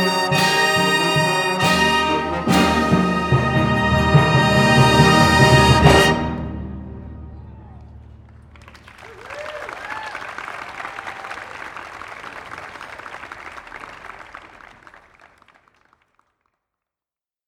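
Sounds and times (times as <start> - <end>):
college band playing a fanfare: 0.0 - 8.0.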